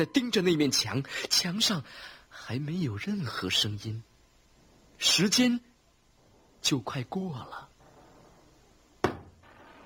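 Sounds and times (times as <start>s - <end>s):
speech: 0.0s - 4.1s, 5.0s - 5.7s, 6.6s - 7.7s
knocking on a door: 9.0s - 9.3s.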